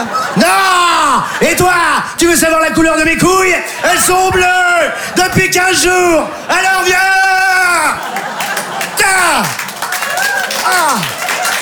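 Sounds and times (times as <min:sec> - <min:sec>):
laughter: 0:00.0 - 0:02.2, 0:03.3 - 0:11.6
speech: 0:01.5 - 0:09.6, 0:10.6 - 0:11.2
audience applauding: 0:07.0 - 0:11.6.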